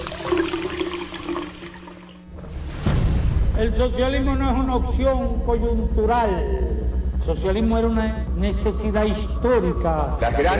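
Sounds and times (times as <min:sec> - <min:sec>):
water draining away: 0:00.0 - 0:02.3
speech: 0:03.6 - 0:10.5.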